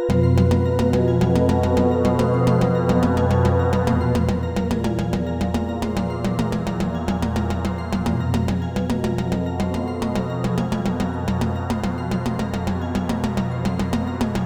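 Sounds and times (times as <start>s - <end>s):
gong: 0.1s - 14.3s.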